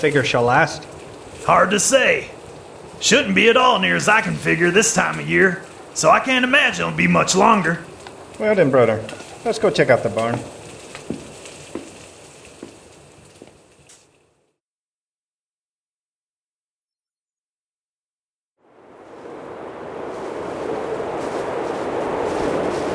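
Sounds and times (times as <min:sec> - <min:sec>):
speech: 0:00.0 - 0:02.4, 0:03.0 - 0:11.2
howling storm roar of wind and rain: 0:00.0 - 0:14.4, 0:18.6 - 0:22.9
crackling noise with sharp pops: 0:00.0 - 0:14.6, 0:20.1 - 0:22.9.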